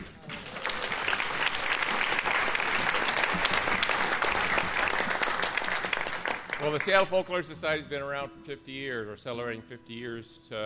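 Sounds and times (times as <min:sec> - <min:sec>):
concert audience applauding to welcome a speaker from the Seattle Folklore Society: 0:00.0 - 0:07.1
speech: 0:06.6 - 0:10.6.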